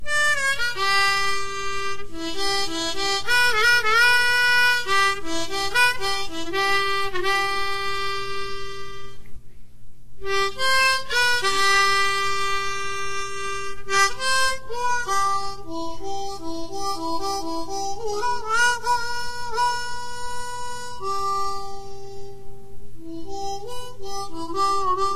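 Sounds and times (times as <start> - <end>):
harmonica: 0.0 - 9.4, 10.2 - 25.1.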